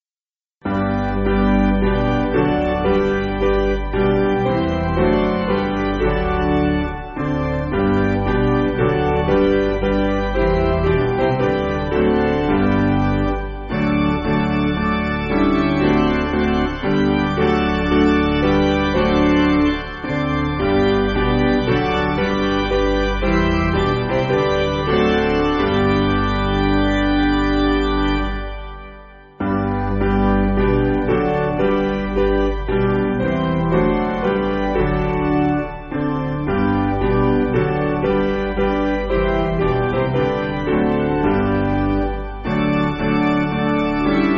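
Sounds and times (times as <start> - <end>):
piano backing music: 0.6 - 44.3.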